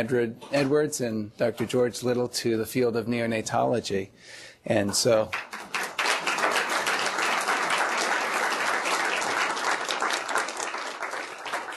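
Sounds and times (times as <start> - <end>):
speech: 0.0 - 5.6
audience applause at a medical grand rounds: 5.3 - 11.7.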